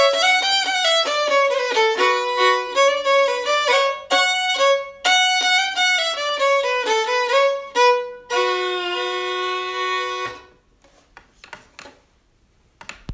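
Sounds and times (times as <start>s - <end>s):
polka music: 0.0s - 10.5s.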